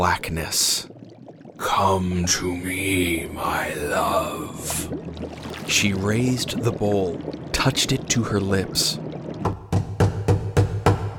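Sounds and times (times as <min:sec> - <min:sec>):
speech: 0:00.0 - 0:00.9, 0:01.6 - 0:09.6
knocking on a door: 0:09.4 - 0:11.1.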